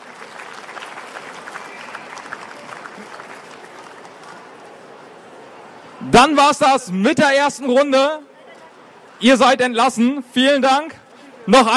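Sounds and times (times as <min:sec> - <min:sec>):
audience applause: 0:00.0 - 0:05.1
speech: 0:06.0 - 0:08.3, 0:09.2 - 0:11.7.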